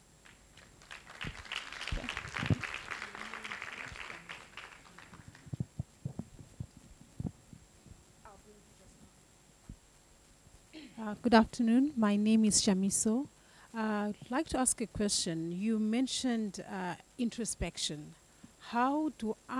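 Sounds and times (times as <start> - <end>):
audience applause: 0.2 - 5.6
speech: 11.1 - 19.5.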